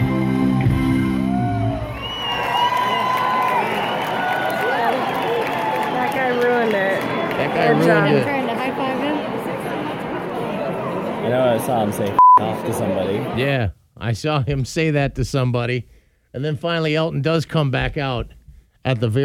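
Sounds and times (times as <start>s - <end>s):
short musical tail: 0.0s - 1.9s
concert crowd cheering: 0.8s - 11.2s
shrill whoops and yells: 1.1s - 6.2s
speech: 7.7s - 8.3s, 11.6s - 19.2s.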